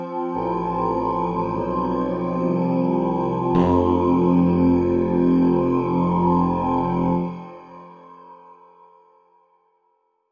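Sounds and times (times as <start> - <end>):
synth bass with flange: 0.2 - 8.1.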